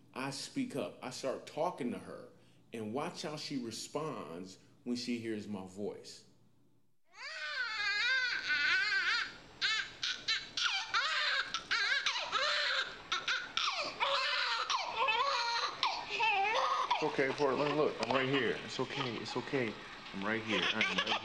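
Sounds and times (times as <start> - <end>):
speech: 0.2 - 6.3, 17.2 - 21.2
newborn baby crying in hospital room: 7.1 - 21.2.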